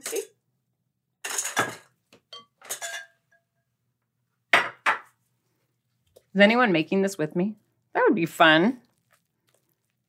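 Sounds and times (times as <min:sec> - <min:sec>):
speech: 0:06.4 - 0:08.8
stirring ingredients in a mixing bowl: 0:08.2 - 0:10.0.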